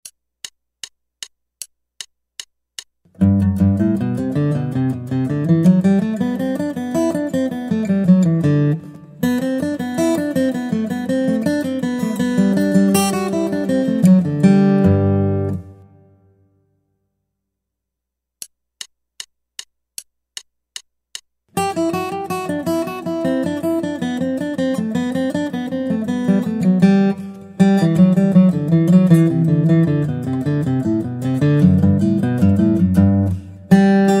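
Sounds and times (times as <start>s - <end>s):
guitar: 3.1s - 16.4s, 21.5s - 34.1s.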